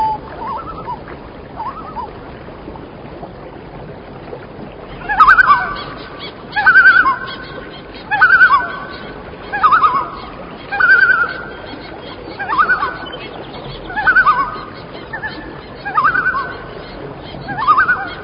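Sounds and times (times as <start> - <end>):
birds: 4.8 - 18.2.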